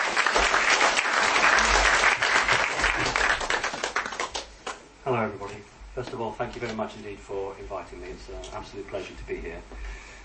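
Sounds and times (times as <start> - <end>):
audience applause: 0.0 - 4.8
speech: 5.2 - 10.0.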